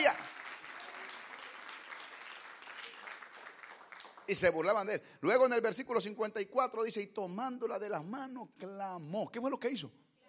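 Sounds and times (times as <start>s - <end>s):
crowd applauding: 0.0s - 4.7s
speech: 4.3s - 10.1s.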